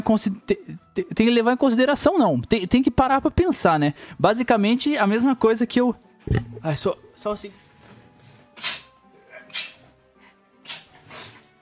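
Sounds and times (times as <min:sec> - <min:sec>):
speech: 0:00.1 - 0:07.6
small stifled sneezes: 0:08.6 - 0:09.9.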